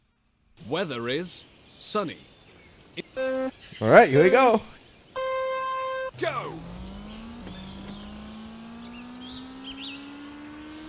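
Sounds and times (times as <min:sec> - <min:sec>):
speech: 0:00.7 - 0:02.3, 0:03.2 - 0:04.7, 0:06.2 - 0:06.7
fast racing car engine revving: 0:05.2 - 0:10.8.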